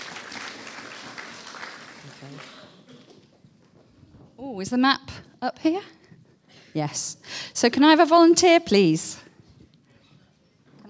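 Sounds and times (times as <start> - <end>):
group clapping: 0.0 - 3.3
speech: 4.4 - 6.0, 6.8 - 9.2.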